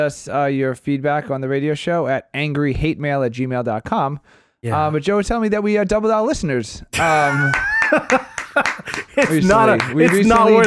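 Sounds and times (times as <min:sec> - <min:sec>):
speech: 0:00.0 - 0:08.3, 0:09.2 - 0:10.6
excited sing-song voices: 0:07.0 - 0:10.6
laughter: 0:07.0 - 0:10.6
loose irregular claps: 0:07.5 - 0:10.6.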